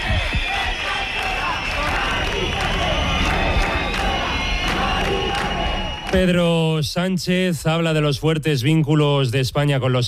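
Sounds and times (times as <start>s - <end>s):
neighbours and protesters shouting at an eviction on General Martínez Campos street in Madrid: 0.0s - 6.4s
speech: 6.1s - 10.0s.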